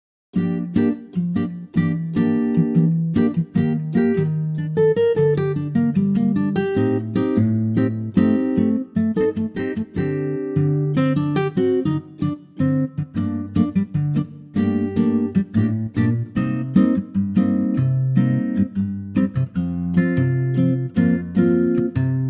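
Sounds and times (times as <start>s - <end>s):
acoustic guitar in G minor: 0.4s - 22.2s.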